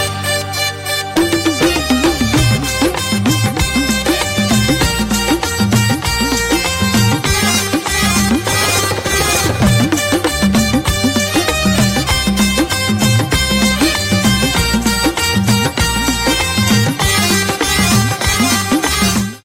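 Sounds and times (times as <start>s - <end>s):
instrumental song ringtone: 0.0s - 19.4s.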